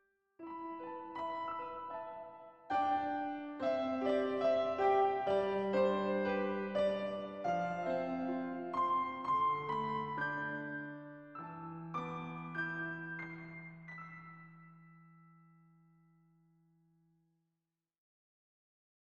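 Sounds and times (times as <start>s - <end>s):
anime-style piano soundscape: 0.4s - 16.2s.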